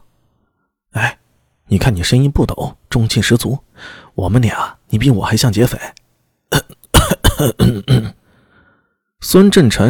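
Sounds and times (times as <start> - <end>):
speech: 1.7 - 6.8, 7.4 - 8.2, 9.2 - 9.8
man coughing loudly: 6.5 - 8.2.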